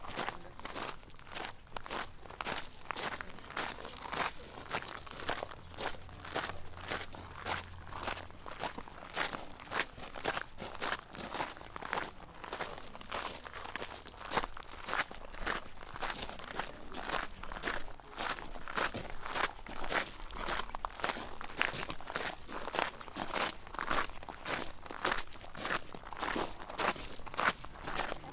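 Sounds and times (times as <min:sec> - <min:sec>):
footsteps on crushed stone: 0:00.0 - 0:28.3.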